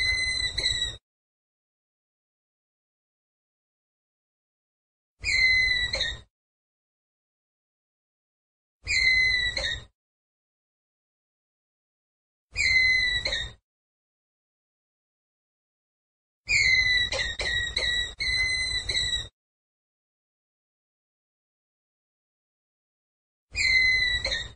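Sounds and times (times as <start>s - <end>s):
ground squirrel whistled call: 0.0s - 1.0s, 5.2s - 6.2s, 8.9s - 9.8s, 12.6s - 13.6s, 16.5s - 19.3s, 23.6s - 24.5s.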